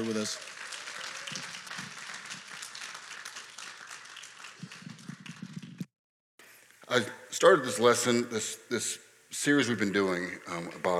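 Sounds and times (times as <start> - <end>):
speech: 0.0 - 0.6, 6.9 - 10.9
church audience applause welcoming a speaker: 0.0 - 5.8.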